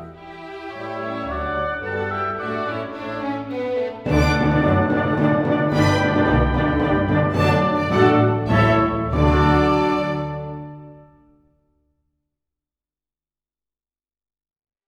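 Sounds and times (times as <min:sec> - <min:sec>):
minuet in D: 0:00.0 - 0:11.2.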